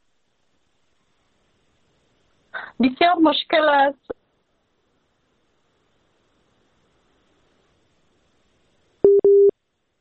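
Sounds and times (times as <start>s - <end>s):
speech: 2.8s - 4.2s
telephone busy tone after a dropped call: 9.0s - 9.5s.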